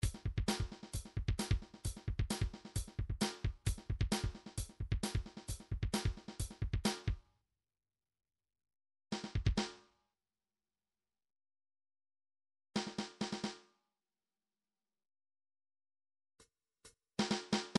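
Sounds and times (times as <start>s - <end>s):
drums: 0.0s - 7.2s, 9.2s - 9.8s, 12.8s - 13.7s, 17.2s - 17.7s.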